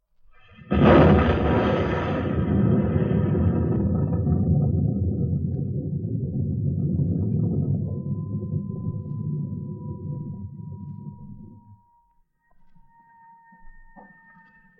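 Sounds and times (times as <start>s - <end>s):
explosion: 0.4s - 11.7s.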